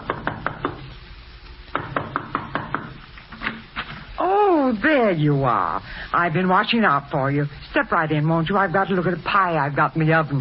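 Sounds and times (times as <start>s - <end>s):
knuckles knocking on a front door: 1.8s - 3.0s
speech: 4.7s - 10.3s.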